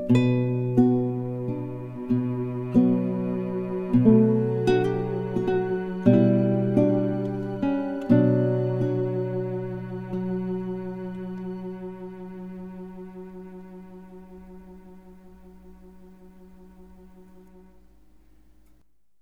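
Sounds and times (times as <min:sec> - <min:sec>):
guitar: 0:00.0 - 0:18.6
cello: 0:00.0 - 0:18.7.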